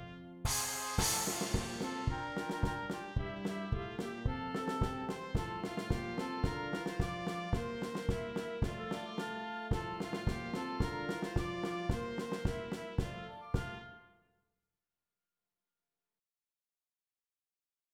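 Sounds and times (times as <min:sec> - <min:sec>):
percussion: 0:00.5 - 0:13.8.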